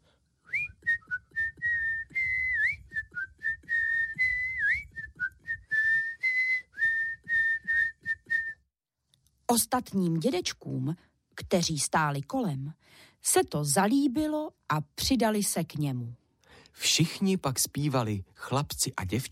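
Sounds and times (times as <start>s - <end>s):
person whistling a song melody: 0.4s - 8.7s
speech: 9.5s - 16.2s, 16.8s - 19.3s.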